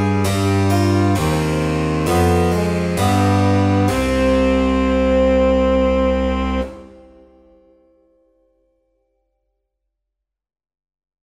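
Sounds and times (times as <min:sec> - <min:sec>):
slow minuet: 0:00.0 - 0:07.9.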